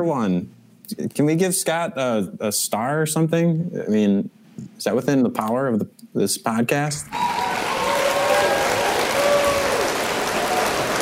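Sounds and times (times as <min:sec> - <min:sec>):
speech: 0:00.0 - 0:07.5
studio audience applause sound effect: 0:07.1 - 0:10.9.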